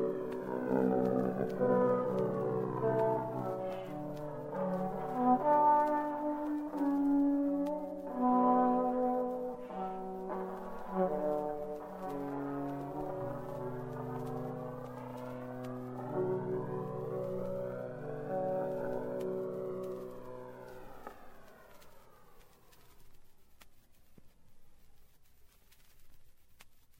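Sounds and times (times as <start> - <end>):
trombones playing a prelude: 0.0 - 21.4.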